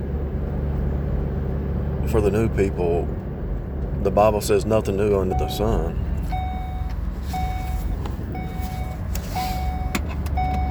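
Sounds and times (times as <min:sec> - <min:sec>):
running vehicle rumble: 0:00.0 - 0:10.6
speech: 0:02.1 - 0:03.3, 0:04.0 - 0:06.1
car seatbelt warning chime: 0:05.2 - 0:10.6.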